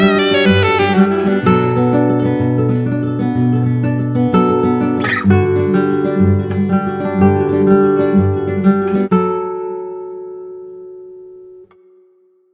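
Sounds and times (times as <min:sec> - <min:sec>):
saxophone: 0:00.0 - 0:02.7
chilled guitar: 0:00.0 - 0:12.4.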